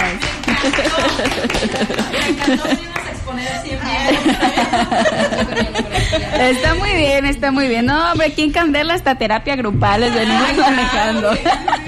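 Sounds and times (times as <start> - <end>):
applause: 0.0 - 3.2
laughter: 0.4 - 3.1, 4.0 - 7.0, 10.1 - 11.8
speech: 0.6 - 11.8.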